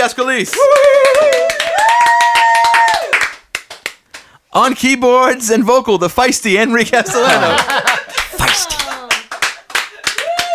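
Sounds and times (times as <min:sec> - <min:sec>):
speech: 0:00.0 - 0:02.2, 0:04.5 - 0:07.9
applause after band member introduction: 0:00.2 - 0:04.3, 0:07.6 - 0:10.5
laughter: 0:07.0 - 0:09.3.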